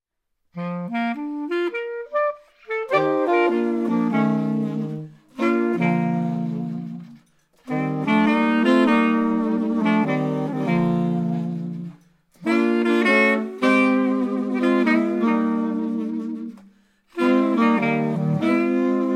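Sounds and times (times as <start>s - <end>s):
blues piece: 0.6s - 19.1s.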